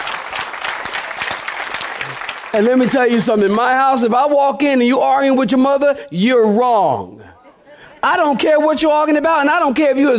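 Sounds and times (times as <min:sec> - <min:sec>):
audience applause: 0:00.0 - 0:03.9
speech: 0:02.5 - 0:07.4, 0:08.0 - 0:10.1.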